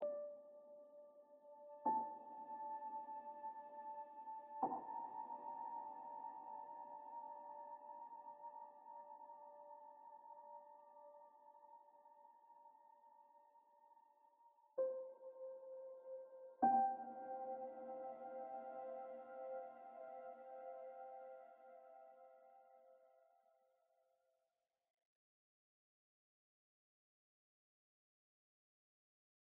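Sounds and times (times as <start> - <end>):
ambient music: 0.0 - 22.8.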